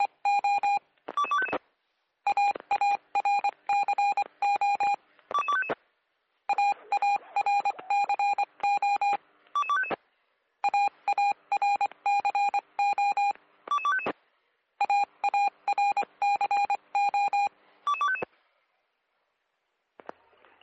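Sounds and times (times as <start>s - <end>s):
strange interfering electronic beep tones on radio: 0.0s - 1.6s, 2.3s - 5.7s, 6.5s - 9.9s, 10.6s - 14.1s, 14.8s - 18.2s.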